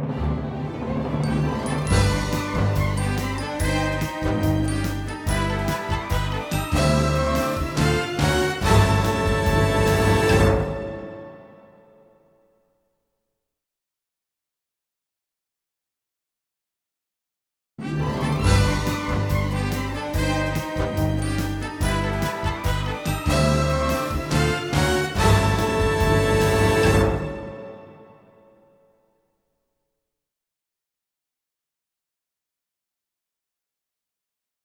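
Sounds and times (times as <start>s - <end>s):
instrumental fanfare: 0.1s - 12.1s, 17.8s - 28.4s.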